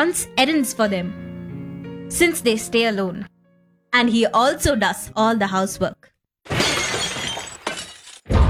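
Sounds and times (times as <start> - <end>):
speech: 0.0 - 1.3, 2.1 - 3.3, 3.9 - 6.1
glass object breaking and shattering: 6.5 - 8.3.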